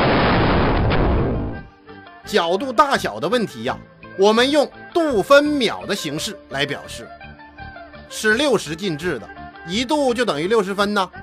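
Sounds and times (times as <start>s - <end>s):
atomic bomb explosion effect: 0.0s - 1.7s
speech: 2.3s - 7.2s, 8.1s - 11.2s.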